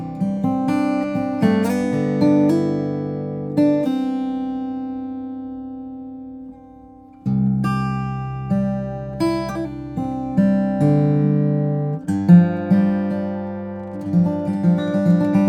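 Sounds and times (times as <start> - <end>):
steel string flattop guitar of Brazilian rosewood and redwood: 0.0 - 15.4.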